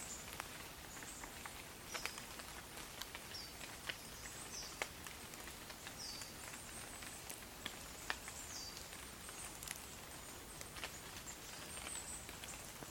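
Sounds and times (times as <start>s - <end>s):
rain in the forest: 0.0s - 12.8s.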